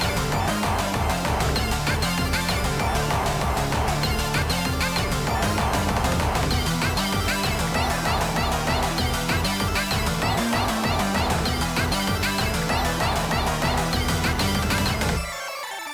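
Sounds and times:
boss background music loop: 0.0 - 15.9.

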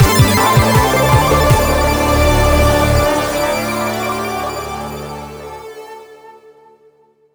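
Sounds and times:
combat player win game music: 0.0 - 5.8.

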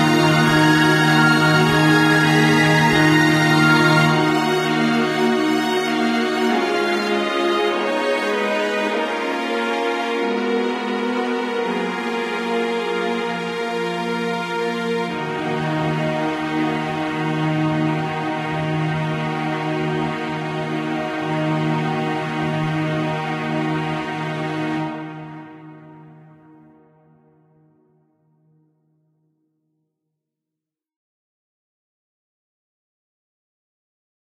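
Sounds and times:
orchestra: 0.0 - 27.0.

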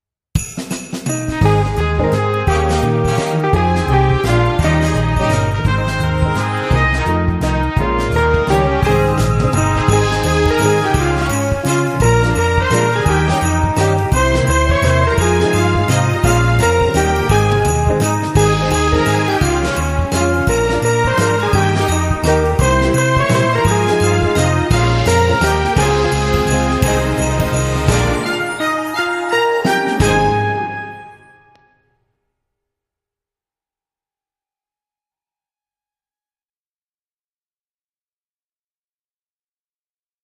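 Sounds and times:
jazz Christmas carol: 1.1 - 31.4.

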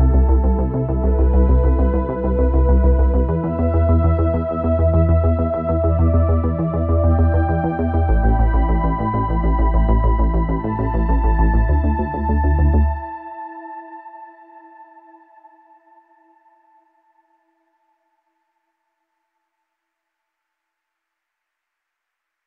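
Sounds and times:
synthwave music: 0.0 - 14.2.

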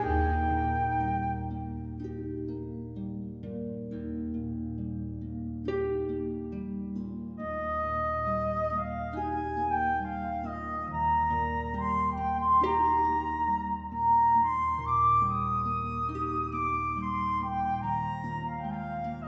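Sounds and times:
calm music loop: 0.0 - 7.4, 8.5 - 19.2.

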